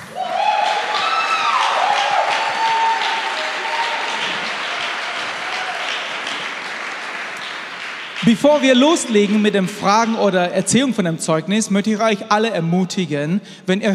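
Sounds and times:
audience applause: 0:00.0 - 0:09.5
speech: 0:08.3 - 0:13.9.

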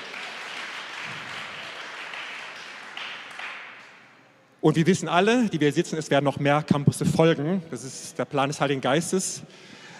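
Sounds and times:
audience applause: 0:00.0 - 0:03.9
speech: 0:04.6 - 0:09.8.

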